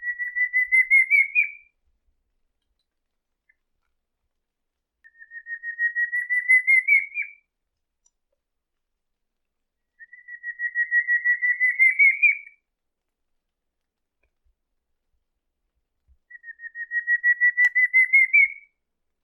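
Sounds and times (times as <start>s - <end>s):
pinto do mato singing: 0.0s - 1.7s, 5.1s - 7.5s, 9.9s - 12.6s, 16.3s - 18.7s.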